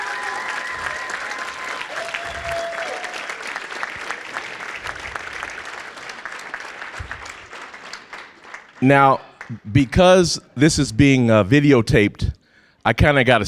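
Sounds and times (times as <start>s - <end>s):
audience applause: 0.0s - 9.5s
speech: 8.8s - 13.4s.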